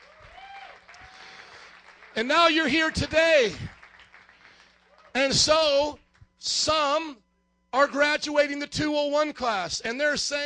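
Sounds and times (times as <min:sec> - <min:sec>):
audience hand clapping: 0:00.0 - 0:06.2
speech: 0:02.2 - 0:03.7, 0:05.2 - 0:10.4.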